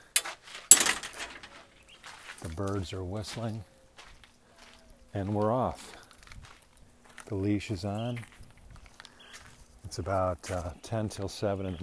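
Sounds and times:
gate opening: 0.0 - 1.8
speech: 2.5 - 3.7, 5.2 - 6.0, 7.3 - 8.3, 9.9 - 11.8.

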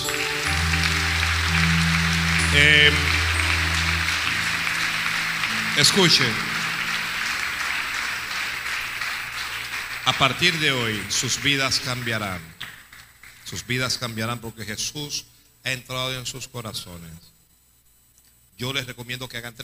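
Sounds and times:
loud audience applause: 0.0 - 13.6
speech: 2.5 - 3.1, 5.8 - 6.5, 10.1 - 12.6, 13.5 - 17.3, 18.6 - 19.6.

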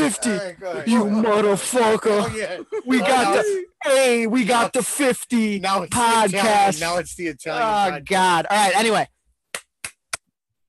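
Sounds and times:
speech: 0.1 - 9.2
laughter: 1.8 - 3.8
hand claps: 9.5 - 10.3.

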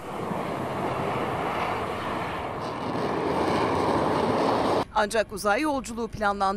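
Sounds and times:
Kairos rocket carrying a satellite launching after countdown: 0.0 - 4.8
speech: 5.0 - 6.5.

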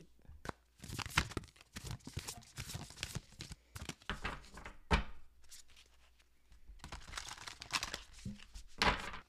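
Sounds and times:
oracle cards being shuffled and pulled from a deck: 0.4 - 4.7, 6.8 - 9.2.

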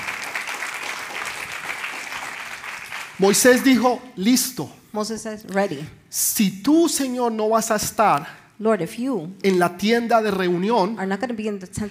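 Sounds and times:
audience applauding: 0.0 - 3.9
speech: 3.2 - 11.8.

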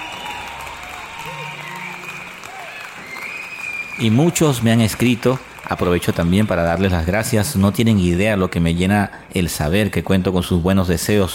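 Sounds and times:
applause: 0.0 - 8.2
speech: 1.2 - 1.6, 4.0 - 11.3.

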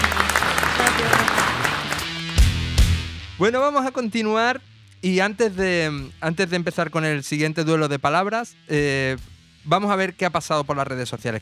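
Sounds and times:
applause: 0.0 - 2.8
speech: 3.4 - 11.3.

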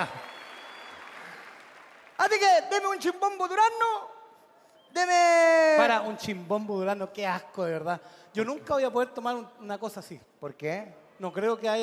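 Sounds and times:
speech: 0.0 - 0.2, 2.2 - 4.1, 4.9 - 11.8
audience applause: 0.0 - 2.5.

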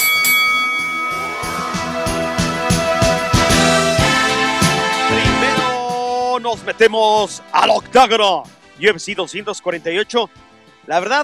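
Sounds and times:
boxing bell ringing: 0.0 - 2.6
loud driving music track with steady percussive hits: 0.0 - 10.4
speech: 6.4 - 11.2.

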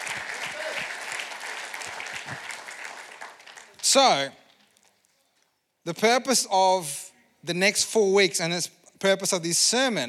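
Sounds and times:
audience applause: 0.0 - 3.8
speech: 3.9 - 4.4, 5.8 - 10.0.

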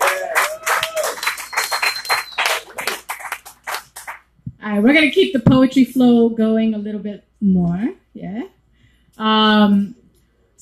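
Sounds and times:
scattered cheers: 0.0 - 3.0
crowd applauding: 0.0 - 4.3
sharp whistle: 1.0 - 2.8
speech: 4.7 - 8.5.

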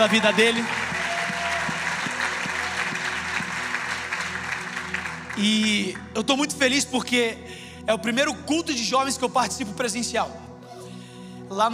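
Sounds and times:
speech: 0.0 - 0.8, 5.4 - 10.4, 11.5 - 11.7
audience applause: 0.0 - 5.9.

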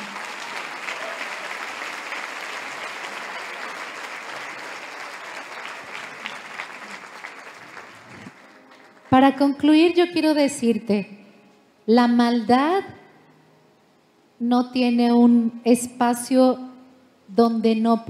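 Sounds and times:
audience applause: 0.0 - 9.1
speech: 9.1 - 11.2, 11.9 - 13.0, 14.4 - 16.6, 17.3 - 18.0.

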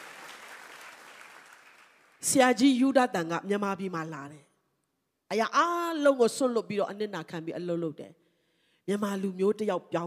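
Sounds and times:
church congregation clapping hands in praise during a sermon: 0.0 - 2.3
speech: 2.2 - 4.5, 5.3 - 8.2, 8.9 - 10.0.

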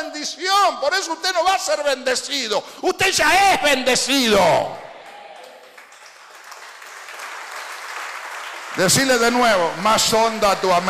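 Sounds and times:
speech: 0.0 - 4.9, 8.8 - 10.8
audience applauding: 5.0 - 10.8.

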